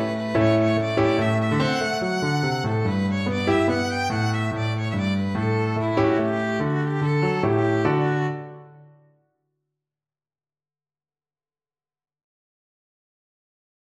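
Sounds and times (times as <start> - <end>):
violin: 0.0 - 8.9.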